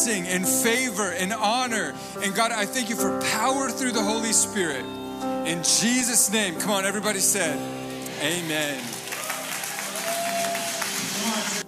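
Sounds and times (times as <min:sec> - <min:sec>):
speech: 0:00.0 - 0:09.0
audience applause: 0:07.9 - 0:11.6.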